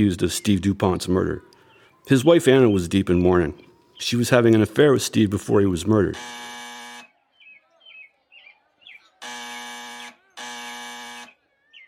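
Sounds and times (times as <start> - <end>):
speech: 0.0 - 6.5
soft bird chirps: 0.0 - 11.8
loud harsh door buzzer: 6.1 - 7.1, 9.2 - 11.4.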